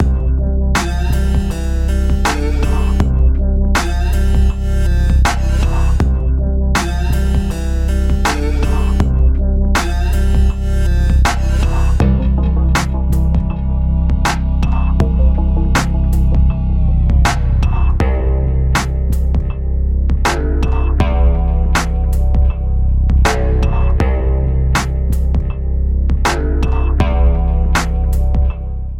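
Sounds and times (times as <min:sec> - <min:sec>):
downtempo music: 0:00.0 - 0:28.9.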